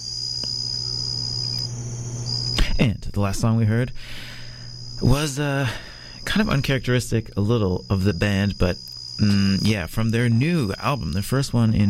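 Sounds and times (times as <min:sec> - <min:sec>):
jungle insect clicks and chirps in Borneo: 0:00.0 - 0:02.7, 0:06.3 - 0:11.8
jungle insects buzzing drone in Borneo: 0:00.0 - 0:11.8
speech: 0:02.8 - 0:04.4, 0:05.0 - 0:11.8.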